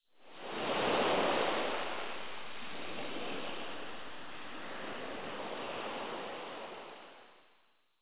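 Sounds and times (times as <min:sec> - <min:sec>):
sea: 0:00.0 - 0:08.0.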